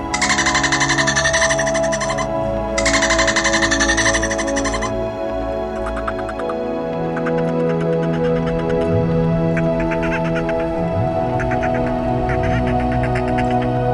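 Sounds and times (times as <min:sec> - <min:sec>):
dolphin burst-pulse clicks: 0:00.2 - 0:13.8.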